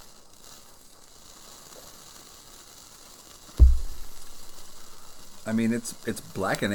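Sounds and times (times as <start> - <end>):
cheese sizzling while being toasted: 0.0 - 6.7
low thump: 3.6 - 5.0
speech: 5.5 - 6.7.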